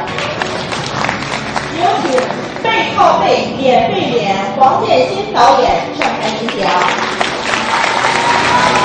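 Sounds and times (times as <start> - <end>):
audience cheering and applause: 0.1 - 2.6, 6.9 - 8.8
speech: 2.9 - 7.3.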